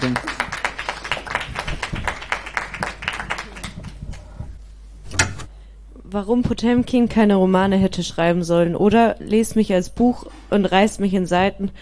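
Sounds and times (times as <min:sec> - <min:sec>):
audience applause: 0:00.0 - 0:04.5
speech: 0:06.1 - 0:11.7.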